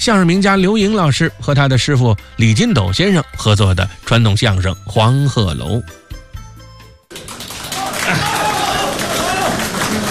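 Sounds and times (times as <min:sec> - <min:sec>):
speech: 0:00.0 - 0:06.0
audience applause: 0:07.1 - 0:10.0.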